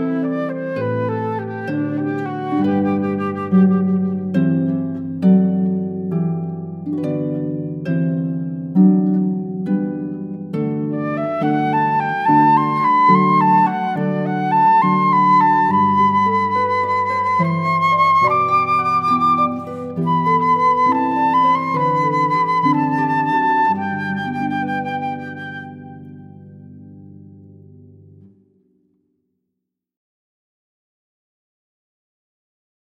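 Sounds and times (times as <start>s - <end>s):
flute: 0.0s - 5.6s, 10.8s - 26.9s
harp: 0.0s - 28.4s.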